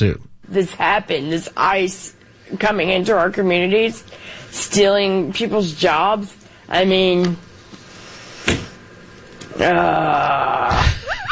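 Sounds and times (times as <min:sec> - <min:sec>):
speech: 0:00.0 - 0:07.5, 0:09.6 - 0:11.0
woman groaning in a played recording: 0:09.5 - 0:11.2.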